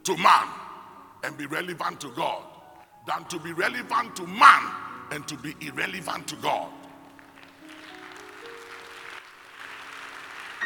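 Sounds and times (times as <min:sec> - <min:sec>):
speech: 0:00.0 - 0:00.6, 0:01.2 - 0:06.8
audience clapping: 0:06.4 - 0:10.6.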